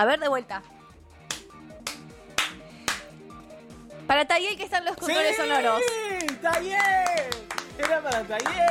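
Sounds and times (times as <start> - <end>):
speech: 0.0 - 0.8, 4.1 - 8.6
hand clapping in a guessing game: 1.2 - 3.2, 4.9 - 8.6.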